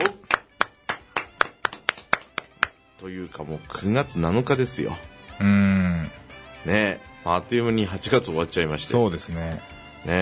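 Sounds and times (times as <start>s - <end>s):
clapping: 0.0s - 2.8s
speech: 3.0s - 10.2s.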